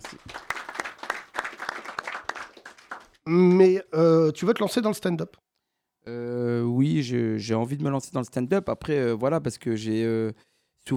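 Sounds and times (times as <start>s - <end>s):
audience applauding: 0.0s - 3.2s
speech: 3.3s - 5.4s, 6.8s - 10.9s.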